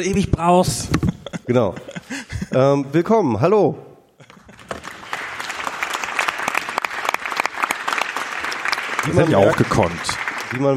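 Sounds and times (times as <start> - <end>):
speech: 0.0 - 3.9, 9.0 - 10.7
laughter: 0.8 - 2.8, 4.2 - 5.1, 9.0 - 10.1
live audience applauding at the 35th Chaos Communication Congress in Leipzig: 4.3 - 10.7.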